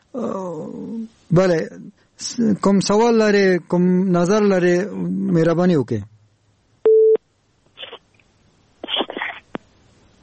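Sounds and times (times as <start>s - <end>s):
speech: 0.1s - 6.1s
telephone tone as a call fails: 6.9s - 7.2s.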